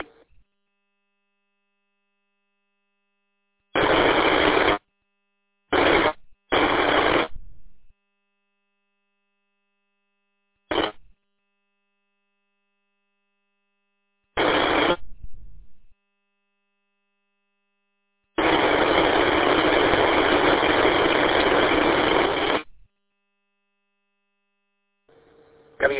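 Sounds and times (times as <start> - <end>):
static bursts on an unreadable radio transmission: 3.8 - 4.8, 5.8 - 7.9, 10.7 - 11.1, 14.4 - 15.2, 18.4 - 22.8, 25.8 - 25.9.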